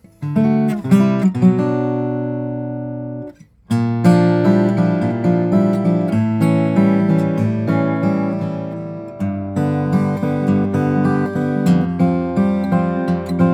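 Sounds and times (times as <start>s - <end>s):
Greenfield G1 steel-string flattop guitar of pernambuco and moonspruce: 0.0s - 13.5s.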